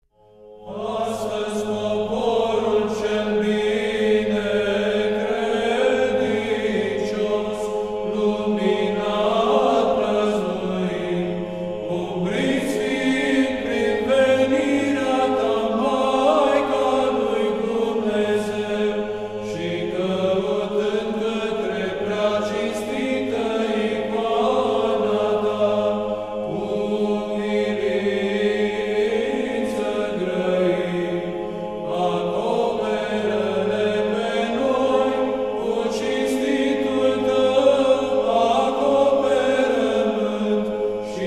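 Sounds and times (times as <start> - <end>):
Orthodox troparion chant in tone 4: 0.2 - 41.2.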